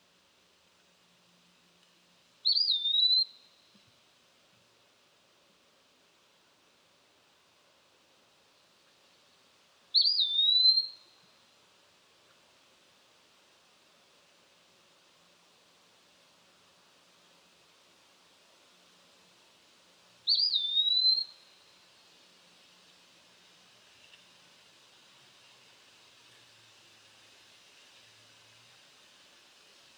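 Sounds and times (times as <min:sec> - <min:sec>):
Eastern Wood Pewee Contopus virens whistling: 0:02.5 - 0:03.4, 0:10.0 - 0:11.0, 0:20.3 - 0:21.4.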